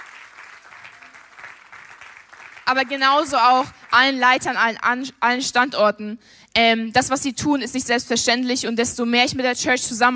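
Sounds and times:
audience applause for church leaders and the leading pastor: 0.0 - 4.2
speech: 2.7 - 10.1.

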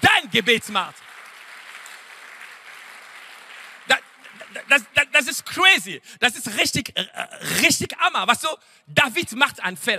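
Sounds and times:
audience applause: 0.0 - 5.4
speech: 0.4 - 1.1, 4.6 - 9.9.

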